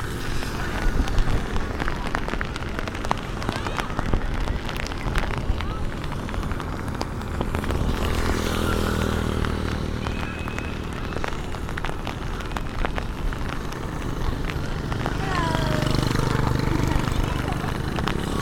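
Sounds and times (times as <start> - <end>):
rain on a beach in Vietnam: 0.0 - 18.4.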